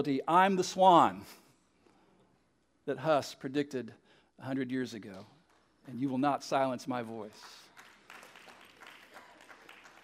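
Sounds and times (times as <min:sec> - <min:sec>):
speech: 0:00.0 - 0:01.4, 0:02.9 - 0:07.6
smattering of applause: 0:06.9 - 0:10.0.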